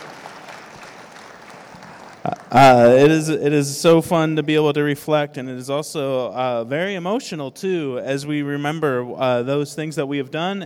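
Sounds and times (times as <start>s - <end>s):
audience applause: 0.0s - 3.2s
speech: 2.2s - 10.6s.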